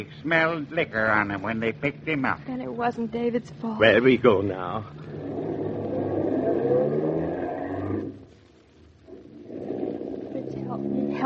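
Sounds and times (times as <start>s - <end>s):
speech: 0.0s - 5.3s
car engine roaring while driving fast: 3.8s - 8.4s, 9.1s - 11.2s.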